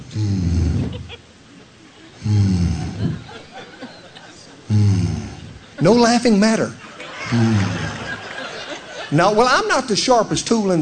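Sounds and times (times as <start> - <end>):
man imitating an airplane engine: 0.0 - 1.2, 2.2 - 3.2, 4.7 - 5.6, 7.3 - 8.1
speech: 0.2 - 1.2, 5.8 - 7.8, 9.1 - 10.8
laughter: 0.8 - 4.7, 5.6 - 9.9.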